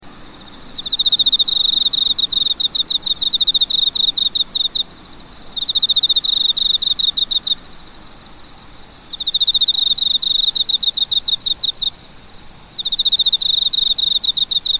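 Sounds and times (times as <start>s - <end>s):
cricket chirping in rapid pulsed bursts: 0.0s - 14.7s.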